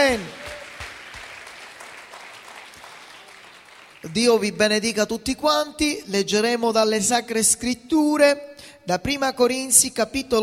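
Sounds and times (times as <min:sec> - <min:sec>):
speech: 0:00.0 - 0:00.4, 0:04.0 - 0:10.4
audience applauding: 0:00.0 - 0:04.2.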